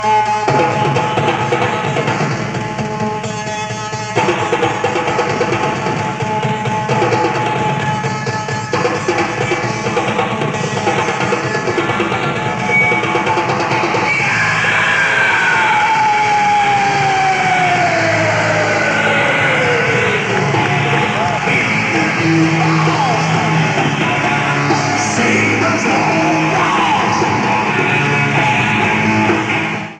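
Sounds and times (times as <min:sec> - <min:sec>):
drum solo: 0:00.0 - 0:29.9.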